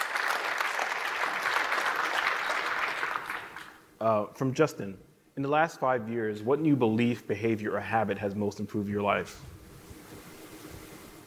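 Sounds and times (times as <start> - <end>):
audience applause: 0.0 - 3.8
speech: 4.0 - 9.6.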